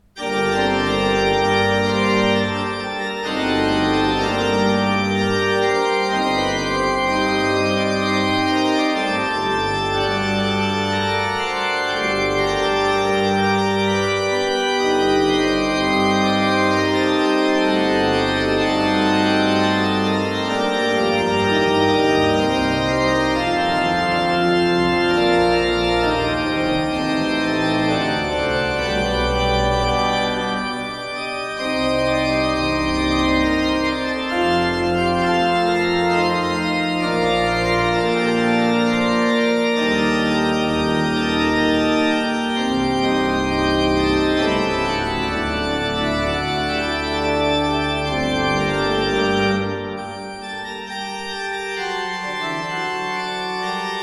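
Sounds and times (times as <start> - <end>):
used organ in Breil: 0.0 - 54.0.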